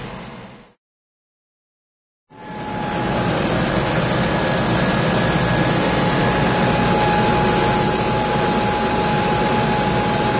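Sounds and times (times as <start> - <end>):
cartoon motor generator running steady: 2.4 - 10.3.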